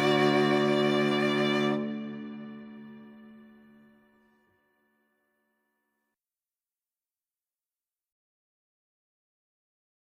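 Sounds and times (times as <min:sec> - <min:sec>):
hornpipe tune: 0:00.0 - 0:04.9.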